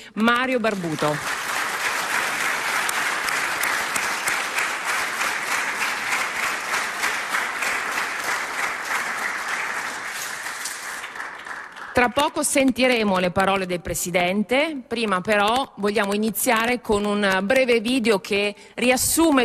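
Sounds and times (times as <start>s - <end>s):
speech: 0.0s - 1.4s, 12.0s - 19.4s
audience applause: 0.7s - 12.0s.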